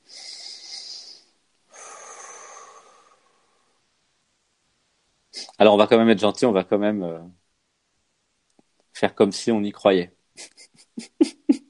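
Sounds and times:
deep breath in and out: 0:00.0 - 0:03.8
speech: 0:05.6 - 0:07.4, 0:09.0 - 0:11.2.

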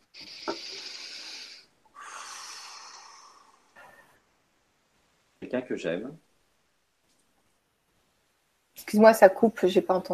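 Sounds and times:
deep breath: 0:00.2 - 0:04.3
speech: 0:05.5 - 0:06.2, 0:08.9 - 0:10.1.

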